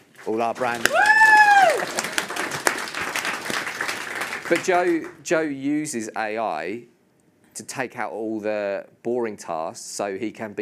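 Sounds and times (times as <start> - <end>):
audience applause: 0.0 - 5.2
speech: 0.2 - 2.1, 4.5 - 6.9, 7.6 - 10.6.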